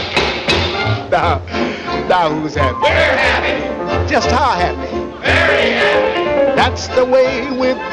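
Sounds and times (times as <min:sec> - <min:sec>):
knocking on wood: 0:00.0 - 0:00.8
speech: 0:01.1 - 0:07.9.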